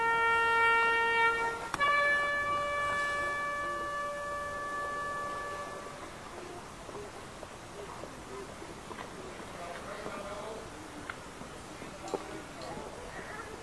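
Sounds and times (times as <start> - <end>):
bugle call in Winchcombe, Cotswolds UK: 0.0 - 6.3.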